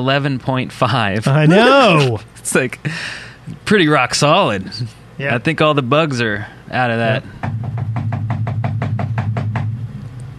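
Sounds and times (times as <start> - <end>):
speech: 0.0 - 7.8
low hum: 7.3 - 10.3
knocking on a door: 7.4 - 9.9.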